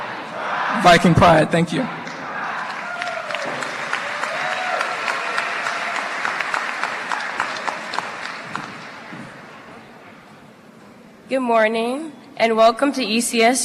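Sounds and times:
speech: 0.8 - 2.0, 11.3 - 13.6
audience applauding graduates: 2.3 - 10.0.

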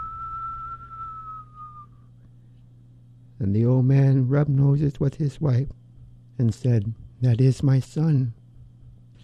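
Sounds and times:
person whistling a sustained note imitating the north wind: 0.0 - 2.1
low hum: 0.0 - 9.2
speech: 3.4 - 5.8, 6.4 - 8.4.

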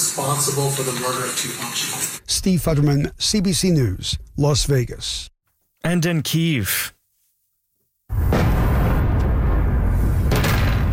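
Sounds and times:
speech: 0.2 - 7.0
explosions in the night sky over Kyiv: 8.1 - 10.9.

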